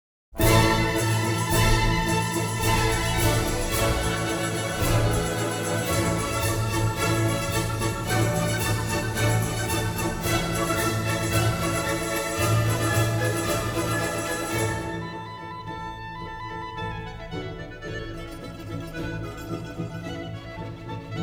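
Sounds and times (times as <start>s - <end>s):
orchestral piece: 0.4s - 21.2s.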